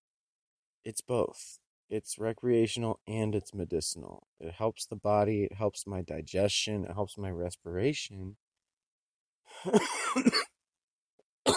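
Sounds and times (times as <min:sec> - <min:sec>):
speech: 0:00.8 - 0:08.4, 0:09.6 - 0:10.5
person coughing: 0:09.7 - 0:10.5.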